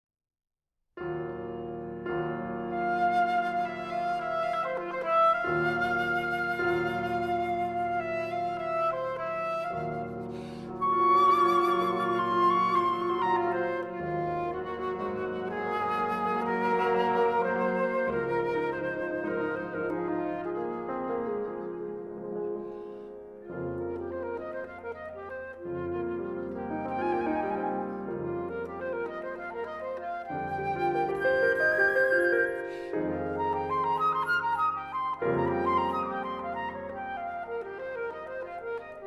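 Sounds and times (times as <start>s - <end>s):
sonata for flute and piano: 1.0s - 39.0s.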